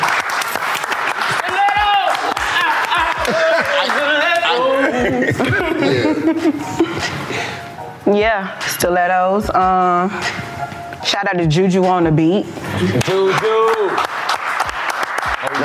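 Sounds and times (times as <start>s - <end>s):
people clapping: 0.0s - 5.1s, 12.7s - 15.6s
laughter: 2.2s - 7.4s, 12.7s - 13.8s
speech: 8.1s - 10.4s, 11.2s - 14.0s.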